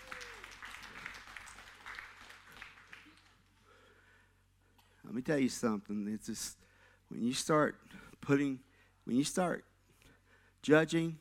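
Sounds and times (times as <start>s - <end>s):
person whooping: 0.0s - 0.6s
audience clapping: 0.0s - 3.6s
speech: 5.1s - 9.7s, 10.6s - 11.1s.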